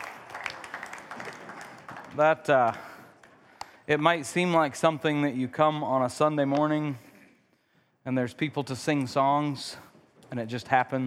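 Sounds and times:
crowd applauding: 0:00.0 - 0:03.4
speech: 0:02.2 - 0:02.9, 0:03.9 - 0:07.1, 0:08.0 - 0:11.0.

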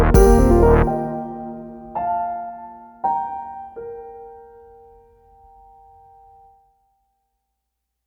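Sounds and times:
music: 0:00.0 - 0:05.5.

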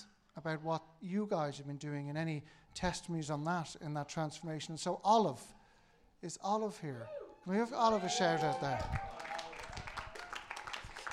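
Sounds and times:
speech: 0:00.4 - 0:05.6, 0:06.2 - 0:09.3
weak sparse applause from audience: 0:07.9 - 0:11.1.

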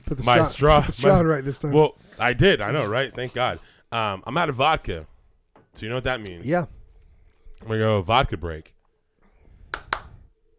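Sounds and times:
speech: 0:00.1 - 0:05.1, 0:05.8 - 0:06.8, 0:07.6 - 0:08.8
hand clapping: 0:09.7 - 0:10.2.

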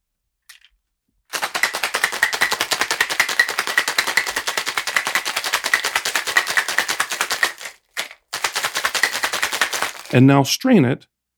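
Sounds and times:
cocktail shaker being shaken: 0:01.3 - 0:10.2
speech: 0:10.1 - 0:11.1.

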